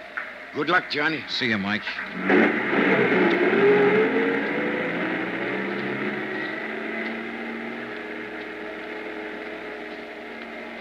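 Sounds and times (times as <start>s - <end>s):
speech: 0.5s - 2.6s
truck driving away in snow: 1.9s - 10.8s.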